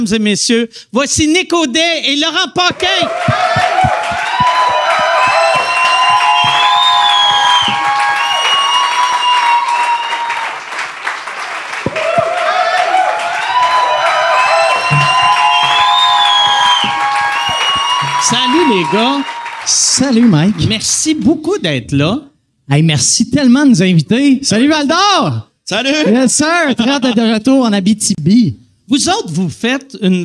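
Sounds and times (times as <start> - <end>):
speech: 0.0 - 4.0, 18.7 - 30.2
whoops and shouts: 2.7 - 10.5, 11.9 - 19.7
large audience applauding: 2.7 - 21.2.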